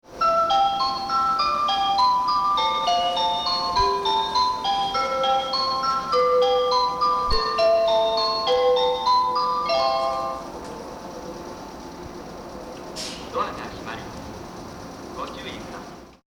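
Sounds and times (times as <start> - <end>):
melody: 0.2 - 10.5.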